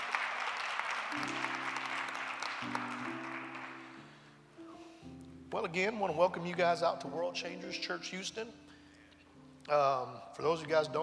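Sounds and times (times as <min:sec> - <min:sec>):
audience clapping: 0:00.0 - 0:04.3
speech: 0:05.5 - 0:08.6, 0:09.7 - 0:11.0.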